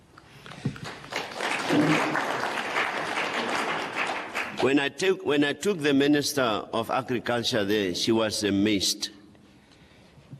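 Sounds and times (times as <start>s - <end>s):
audience applause: 0.8s - 4.7s
speech: 4.6s - 9.2s.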